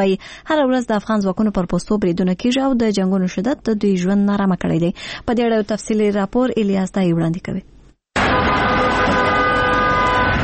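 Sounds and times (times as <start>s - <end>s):
speech: 0.0s - 7.8s
grey military ambulance leaving Bost government hospital: 8.2s - 10.4s.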